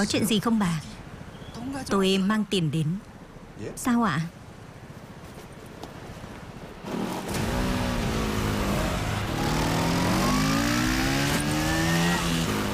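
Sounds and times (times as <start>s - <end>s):
speech: 0.0s - 1.0s, 1.6s - 4.4s
motorbike speeding away: 7.3s - 12.7s.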